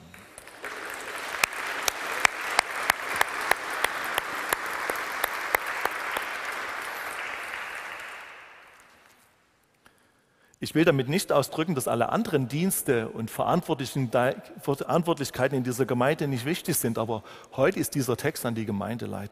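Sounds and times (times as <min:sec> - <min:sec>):
audience applauding: 0:00.0 - 0:09.2
speech: 0:10.7 - 0:19.2.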